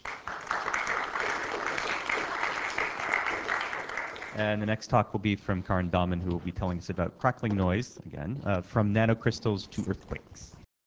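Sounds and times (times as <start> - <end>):
audience applauding after a talk: 0.0 - 4.5
speech: 4.4 - 10.6.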